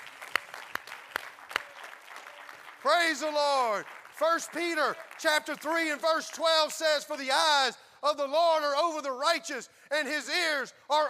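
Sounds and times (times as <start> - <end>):
audience clapping hands: 0.0 - 6.8
speech: 2.8 - 11.0.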